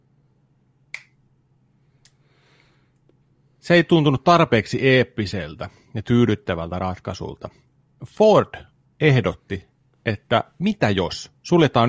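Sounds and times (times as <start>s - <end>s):
finger snapping: 0.9s - 1.2s
speech: 3.7s - 11.8s.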